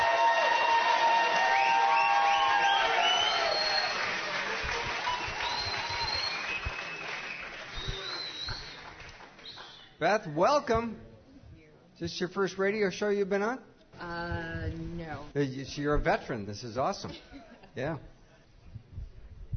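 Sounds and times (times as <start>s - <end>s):
crowd cheering for a guest on a live radio show: 0.0s - 9.7s
audience applause for a guest on a live radio show: 0.0s - 9.8s
speech: 10.0s - 11.1s, 12.0s - 18.1s.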